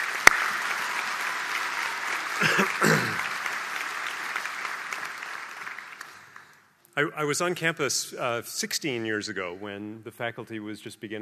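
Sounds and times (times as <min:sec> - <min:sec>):
audience applause at a UCLA School of Education graduation ceremony: 0:00.0 - 0:06.6
speech: 0:07.0 - 0:11.2.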